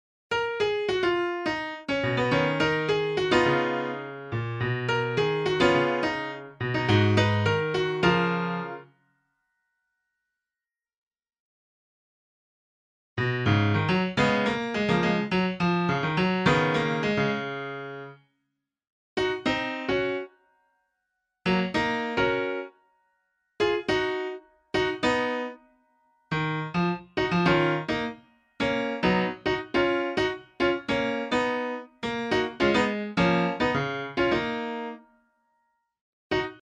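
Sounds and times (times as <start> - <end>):
piano: 0.3 - 9.2, 13.2 - 18.3, 19.2 - 20.7, 21.4 - 23.0, 23.6 - 35.5, 36.3 - 36.6.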